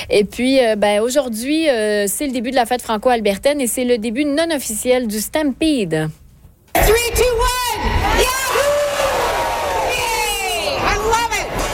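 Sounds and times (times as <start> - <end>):
speech: 0.0 - 6.2, 6.8 - 8.4
crowd cheering at the official Stampede pancake breakfast in downtown Calgary: 7.7 - 11.7.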